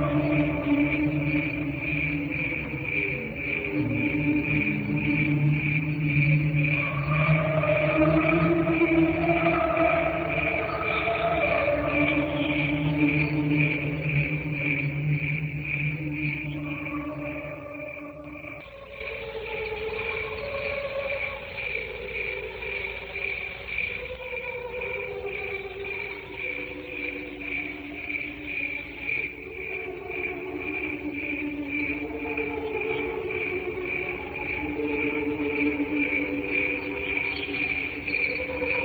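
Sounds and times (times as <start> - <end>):
cricket chirping: 0.0 - 38.8.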